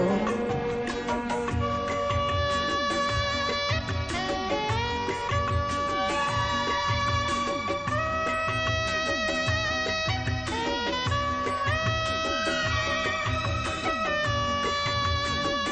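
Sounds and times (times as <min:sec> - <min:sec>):
flute: 0:00.0 - 0:15.7.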